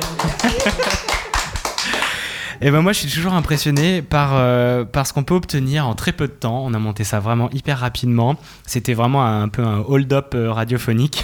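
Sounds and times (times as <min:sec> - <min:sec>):
laughter: 0:00.0 - 0:02.4
group applauding: 0:00.0 - 0:02.6, 0:03.2 - 0:04.0
speech: 0:02.6 - 0:11.2.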